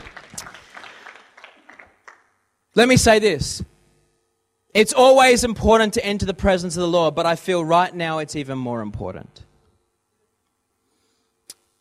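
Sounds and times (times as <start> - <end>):
audience round of applause: 0.0 - 2.3
speech: 2.8 - 3.7, 4.7 - 9.5.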